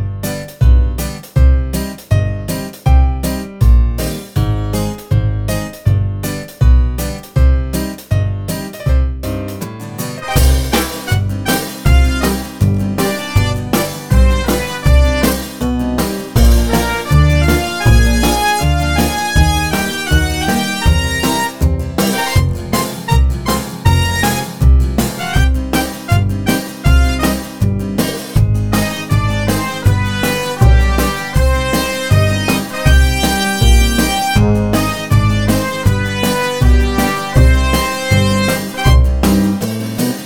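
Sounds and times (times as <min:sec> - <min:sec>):
cafe shanson music loop: 0:00.0 - 0:40.2.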